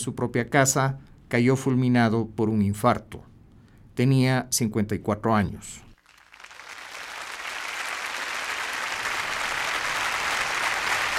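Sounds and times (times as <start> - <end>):
speech: 0.0 - 3.3, 4.0 - 5.9
concert audience applauding conductor: 6.0 - 11.1.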